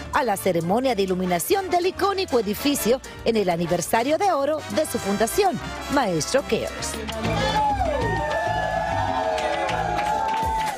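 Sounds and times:
speech: 0:00.2 - 0:07.6
audience applause: 0:07.4 - 0:10.7.

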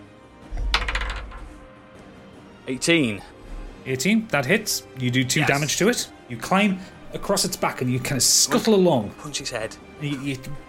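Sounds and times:
plastic d20 die clattering across a hard tabletop: 0:00.6 - 0:01.6
speech: 0:02.7 - 0:10.6.

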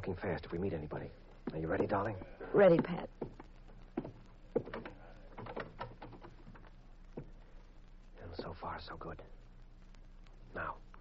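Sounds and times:
speech: 0:00.0 - 0:03.4, 0:08.5 - 0:09.3
door opening: 0:04.6 - 0:06.7.

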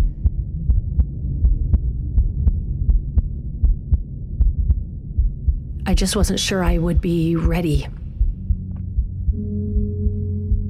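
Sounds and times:
amplified heartbeat thumping: 0:00.0 - 0:10.6
speech: 0:05.9 - 0:08.0.

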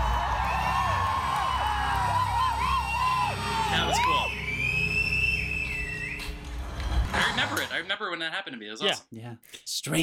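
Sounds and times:
crowd cheering: 0:00.0 - 0:07.6
shrill whistle: 0:02.3 - 0:06.4
speech: 0:07.8 - 0:10.0.

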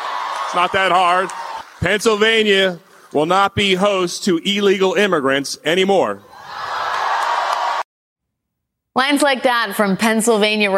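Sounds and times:
political rally crowd cheering: 0:00.0 - 0:04.8, 0:06.2 - 0:07.9
speech: 0:00.5 - 0:06.3, 0:09.0 - 0:10.7.

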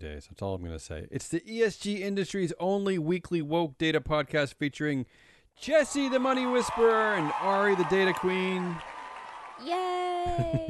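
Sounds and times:
speech: 0:00.0 - 0:08.9, 0:09.6 - 0:10.6
crowd cheering: 0:05.6 - 0:10.4.

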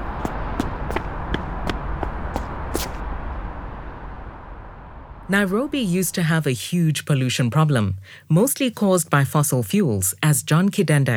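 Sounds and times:
running footsteps on street to catch a bus: 0:00.0 - 0:03.0
noise: 0:00.0 - 0:11.1
speech: 0:05.3 - 0:11.1.

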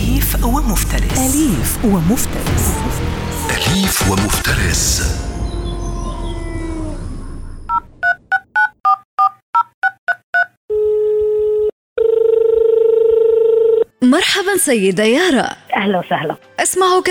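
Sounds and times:
speech: 0:00.4 - 0:05.3, 0:14.1 - 0:17.0
loud noisy bed: 0:01.9 - 0:08.0
telephone keypad tones dialing a number: 0:07.7 - 0:10.6
steady telephone tone: 0:10.7 - 0:13.9.

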